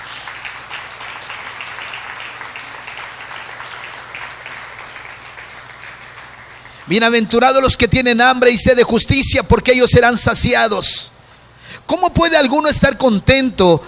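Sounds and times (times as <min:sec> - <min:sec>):
audience applause: 0:00.0 - 0:07.2
speech: 0:06.9 - 0:11.1, 0:11.9 - 0:13.8.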